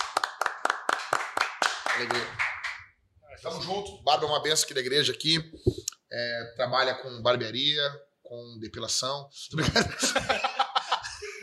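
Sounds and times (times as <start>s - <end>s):
hands clapping: 0.0s - 3.0s
speech: 2.0s - 2.4s, 3.4s - 10.6s
laughter: 9.6s - 11.4s.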